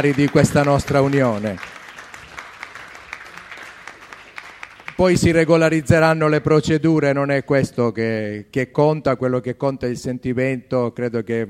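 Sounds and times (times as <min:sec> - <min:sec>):
speech: 0:00.0 - 0:01.7, 0:05.0 - 0:11.4
council members applauding: 0:00.0 - 0:05.8.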